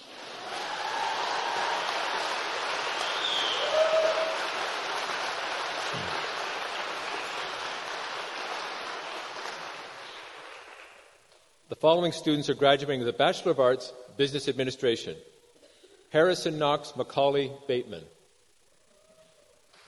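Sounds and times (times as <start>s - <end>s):
crowd applause: 0.0s - 11.2s
whistle-like tone: 3.0s - 4.3s
speech: 11.8s - 15.3s, 16.1s - 18.2s.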